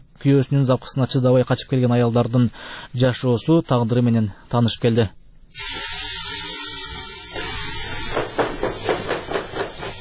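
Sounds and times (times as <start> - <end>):
speech: 0.2 - 5.9
hiss: 5.6 - 9.9.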